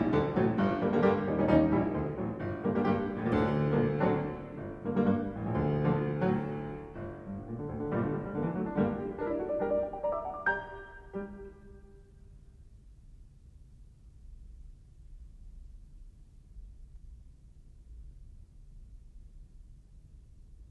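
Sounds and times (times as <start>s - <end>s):
piano prelude in G minor: 0.0s - 12.3s.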